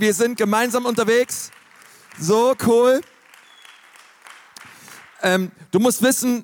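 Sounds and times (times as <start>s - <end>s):
speech: 0.0s - 1.6s, 2.2s - 3.1s, 5.2s - 6.4s
audience applause: 0.2s - 5.3s.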